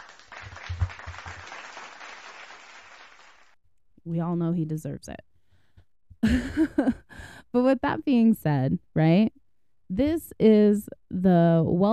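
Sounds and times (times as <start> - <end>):
audience applause: 0.0 - 3.6
speech: 4.0 - 5.3, 6.2 - 9.3, 9.9 - 11.9.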